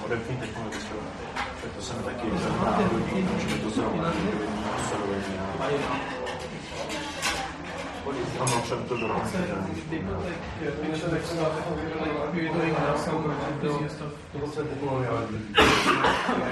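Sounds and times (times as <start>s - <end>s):
medium crowd murmur in an Indian restaurant interior in Prague: 0.0s - 16.4s
people eating food from metal plates: 0.0s - 16.4s
heavy coughing: 15.5s - 16.4s.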